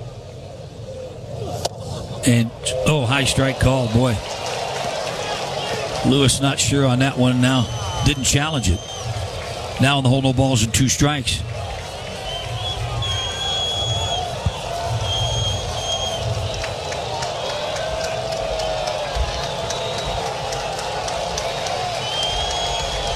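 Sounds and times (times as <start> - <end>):
baseball stadium crowd cheering: 0.0 - 23.1
speech: 2.2 - 4.4, 6.0 - 9.0, 9.8 - 11.7.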